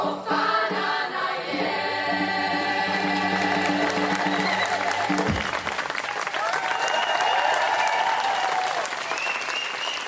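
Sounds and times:
gospel choir holding a final chord: 0:00.0 - 0:05.2
audience applause for gospel choir: 0:03.0 - 0:10.0
scattered cheers and voices: 0:06.3 - 0:09.0.

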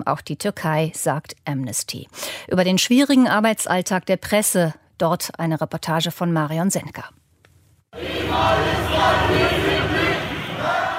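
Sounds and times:
speech: 0:00.0 - 0:07.2, 0:08.4 - 0:10.0
protest crowd in a street near Taksim Square: 0:08.0 - 0:10.9.

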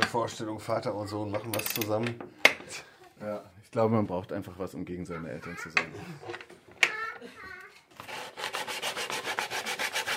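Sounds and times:
speech: 0:00.1 - 0:06.5
hand sanding a white melamine-coated 15 mm Scandinavian plywood board: 0:08.0 - 0:10.1.

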